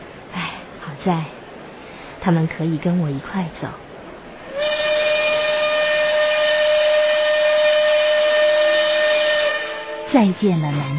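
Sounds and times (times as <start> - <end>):
moving train rumbling: 0.0 - 10.9
speech: 1.0 - 1.4, 2.2 - 3.8, 10.1 - 10.9
train steam whistle blast: 4.5 - 10.2.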